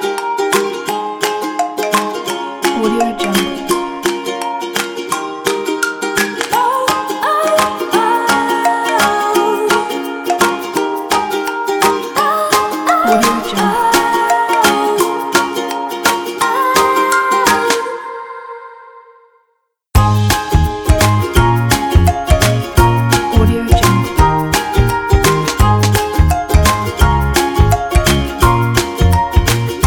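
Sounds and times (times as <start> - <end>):
light cheerful kids music: 0.0 - 17.9, 20.0 - 29.8.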